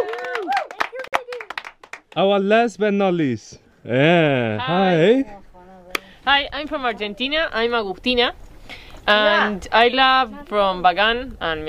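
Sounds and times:
audience clapping: 0.0 - 2.2
speech: 2.2 - 5.4, 6.3 - 11.6.

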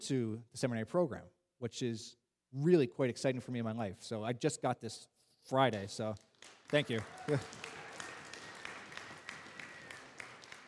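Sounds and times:
speech: 0.0 - 7.8
crowd applauding: 6.0 - 10.6.

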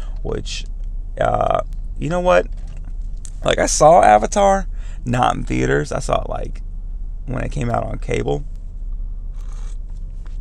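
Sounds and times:
speech: 0.2 - 2.7, 3.4 - 6.6, 7.3 - 8.5
slurping coffee: 9.4 - 9.9.

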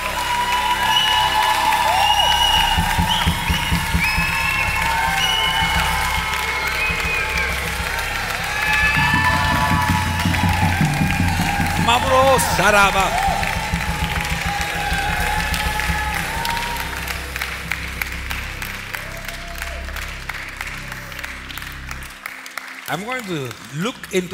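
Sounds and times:
people shouting: 0.0 - 17.1
whoops: 0.0 - 18.3, 18.9 - 21.3
crowd clapping and cheering: 0.0 - 24.3
speech: 12.4 - 13.4, 22.9 - 24.3.

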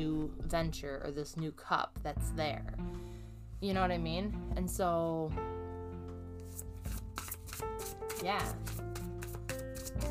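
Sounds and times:
speech: 0.0 - 5.5, 8.2 - 8.9
oracle cards from a Divine Abundance deck being shuffled and pulled: 6.4 - 10.0.

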